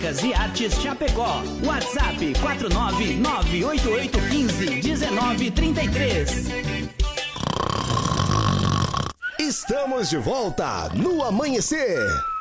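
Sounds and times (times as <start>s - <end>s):
speech: 0.0s - 7.0s, 9.5s - 12.3s
snoring sound effect: 7.3s - 9.2s.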